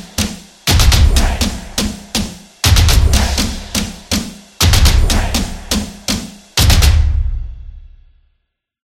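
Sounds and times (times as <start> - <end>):
drums: 0.0 - 8.2
claps: 0.1 - 6.8.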